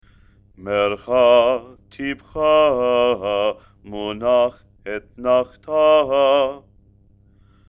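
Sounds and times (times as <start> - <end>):
person chanting haftarah with trope: 0.6 - 6.6.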